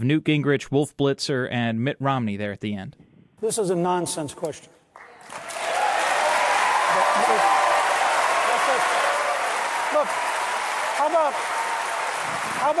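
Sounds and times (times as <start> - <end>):
speech: 0.0 - 5.5, 12.6 - 12.7
large debate audience applause: 5.0 - 12.7
whoops and cheers: 5.3 - 12.7.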